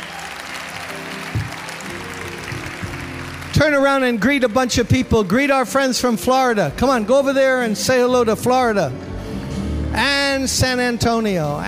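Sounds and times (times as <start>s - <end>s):
audience applause in a standing ovation: 0.0s - 6.0s
speech: 3.6s - 9.1s, 9.9s - 11.6s.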